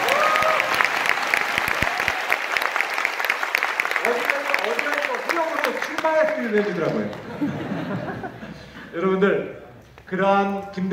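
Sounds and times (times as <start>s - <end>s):
audience applause: 0.0s - 8.2s
speech: 6.1s - 10.9s
laughter: 6.9s - 9.0s.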